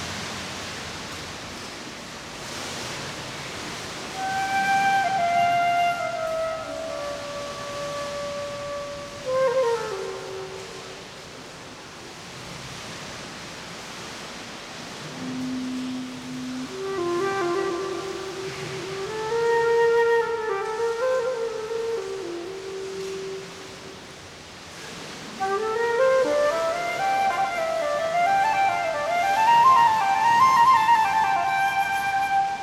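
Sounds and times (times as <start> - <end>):
flute playing in a cave: 4.0 - 11.5, 15.0 - 24.2, 24.9 - 32.6.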